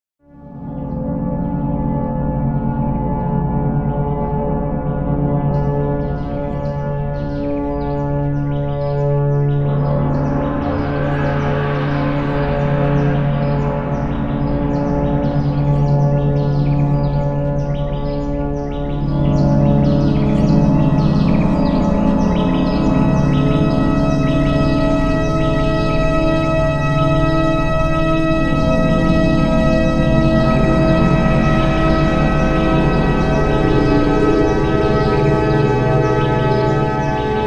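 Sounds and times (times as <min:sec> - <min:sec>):
spa music tuned to 432 Hz: 0:00.6 - 0:37.4.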